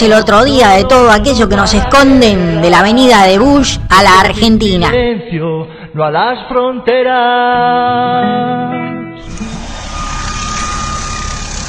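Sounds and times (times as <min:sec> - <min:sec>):
speech: 0:00.0 - 0:09.5
helicopter engine: 0:09.2 - 0:11.6.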